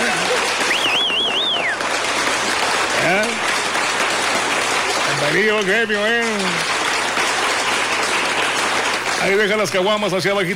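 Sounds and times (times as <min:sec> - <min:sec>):
applause: 0:00.0 - 0:10.5
speech: 0:05.4 - 0:06.7, 0:09.2 - 0:10.5.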